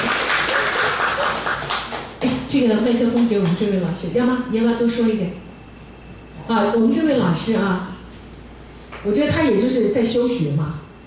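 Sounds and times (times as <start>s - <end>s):
audience clapping for a teacher at a group gathering: 0.0s - 2.3s
speech: 2.5s - 5.5s, 6.5s - 7.9s, 9.0s - 10.8s.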